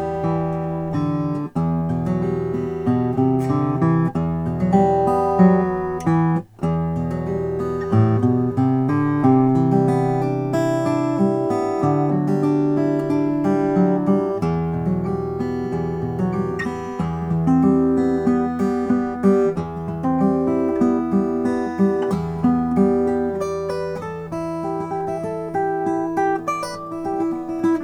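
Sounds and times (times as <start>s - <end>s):
mahogany guitar playing: 0.0s - 27.8s.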